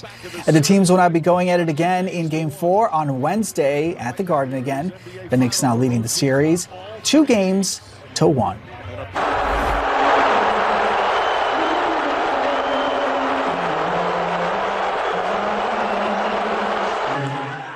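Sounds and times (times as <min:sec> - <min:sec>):
speech: 0:00.0 - 0:09.6
crowd booing at basketball game: 0:09.2 - 0:17.7.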